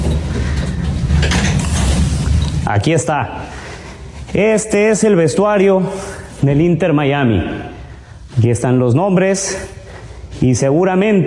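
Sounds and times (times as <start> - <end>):
door being opened: 0.0 - 2.8
speech: 2.7 - 3.6, 4.3 - 7.7, 8.4 - 9.8, 10.4 - 11.2.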